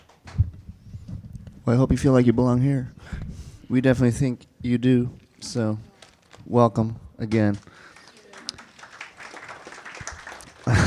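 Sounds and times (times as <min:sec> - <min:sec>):
speech: 0:01.7 - 0:05.9, 0:06.5 - 0:07.7
polite audience applause: 0:07.3 - 0:10.8.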